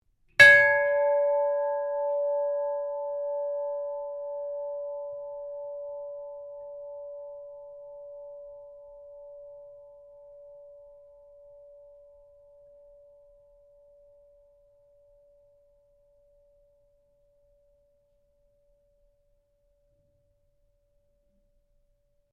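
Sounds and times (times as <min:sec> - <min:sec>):
ship's bell ringing: 0:00.4 - 0:09.0.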